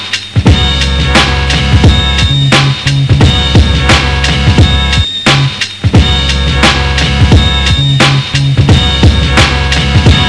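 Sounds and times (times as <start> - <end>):
trumpets: 0.5 - 10.2.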